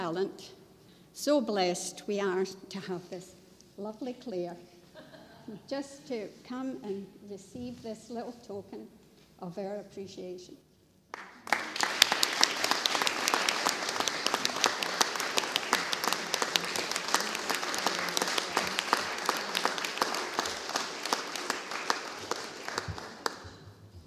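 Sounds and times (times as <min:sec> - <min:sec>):
speech: 0:00.1 - 0:00.6, 0:01.2 - 0:04.7, 0:05.5 - 0:10.6
crowd applause: 0:11.2 - 0:23.6.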